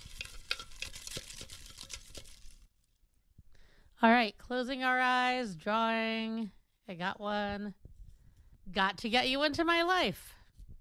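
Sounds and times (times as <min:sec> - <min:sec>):
crumpled paper slips being mixed in bowl: 0:00.0 - 0:02.8
speech: 0:04.0 - 0:07.8, 0:08.7 - 0:10.3.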